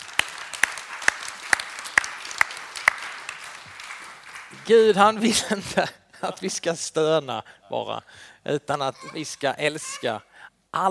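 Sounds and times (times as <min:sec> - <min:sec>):
slow steady audience applause: 0:00.0 - 0:05.4
speech: 0:04.7 - 0:10.8.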